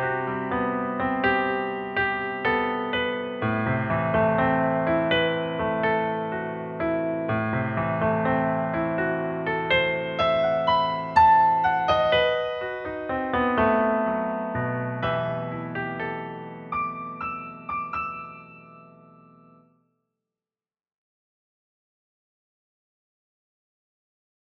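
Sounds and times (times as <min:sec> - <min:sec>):
improvised music: 0:00.2 - 0:18.8.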